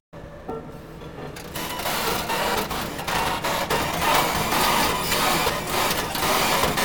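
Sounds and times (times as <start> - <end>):
construction machine whirring and clattering: 1.4 - 6.8.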